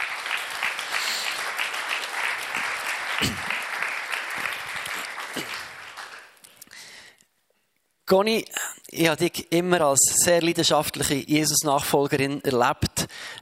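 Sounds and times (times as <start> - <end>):
audience applause: 0.0 - 6.4
speech: 8.1 - 13.3.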